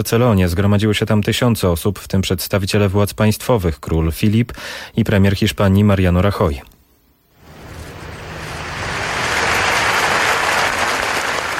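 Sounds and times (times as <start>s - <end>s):
speech: 0.0s - 6.7s
crowd applauding in Plaça de Catalunya, Barcelona, honouring attack victims: 7.4s - 11.5s.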